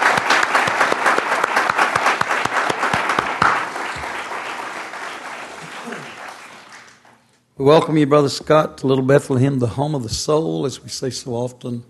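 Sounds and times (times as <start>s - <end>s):
church congregation applauding to welcome a visitor: 0.0s - 7.4s
speech: 7.6s - 11.8s.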